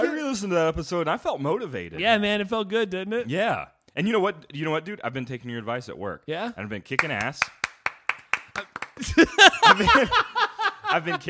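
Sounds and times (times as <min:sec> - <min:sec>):
speech: 0:00.3 - 0:07.6, 0:09.0 - 0:11.2
hands clapping: 0:06.9 - 0:10.0
laughter: 0:08.6 - 0:11.2.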